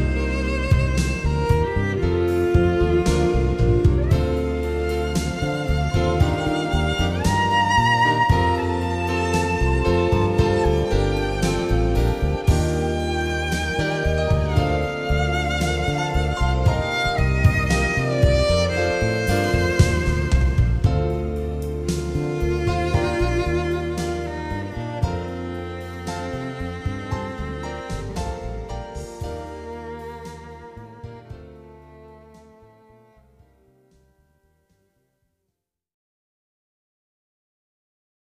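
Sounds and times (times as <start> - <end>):
ambient cello: 0.0 - 34.1.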